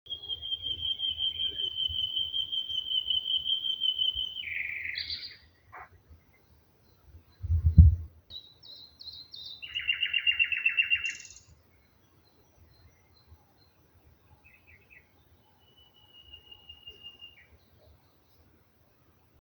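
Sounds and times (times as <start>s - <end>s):
nightingales singing in spring: 0.1s - 5.9s, 8.3s - 13.3s, 14.4s - 17.5s.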